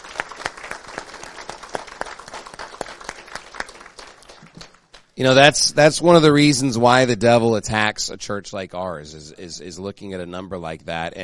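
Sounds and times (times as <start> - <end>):
audience applause: 0.0 - 5.0
speech: 5.2 - 11.2.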